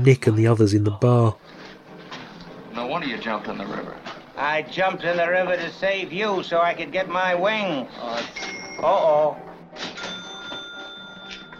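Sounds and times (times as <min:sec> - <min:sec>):
speech: 0:00.0 - 0:01.6, 0:02.9 - 0:09.9
small bell ringing: 0:08.4 - 0:09.2, 0:10.0 - 0:11.5.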